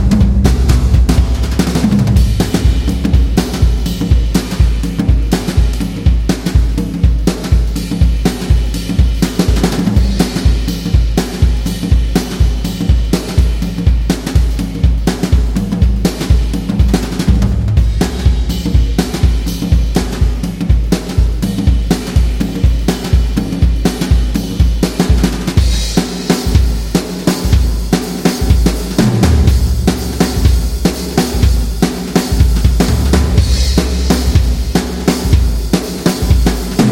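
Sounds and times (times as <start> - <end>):
jazz drums: 0.0 - 36.9.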